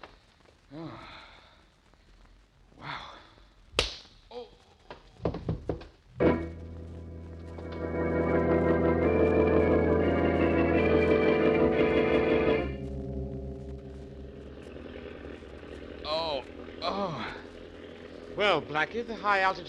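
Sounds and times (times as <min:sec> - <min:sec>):
airplane engine roaring: 0:06.7 - 0:19.6
speech: 0:18.5 - 0:19.6.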